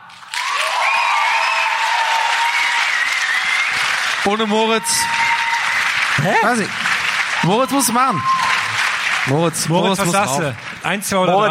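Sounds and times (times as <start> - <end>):
audience applause: 0.0 - 11.4
speech: 4.2 - 5.2, 6.2 - 8.5, 9.2 - 11.4.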